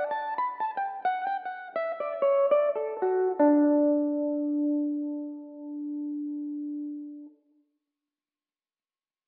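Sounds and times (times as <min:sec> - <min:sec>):
Irish mandolin playing in D major: 0:00.0 - 0:07.0.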